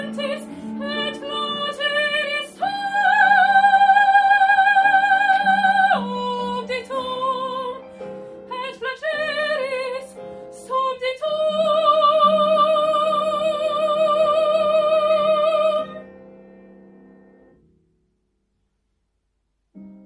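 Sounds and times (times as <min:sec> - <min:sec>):
soprano singing: 0:00.0 - 0:16.2.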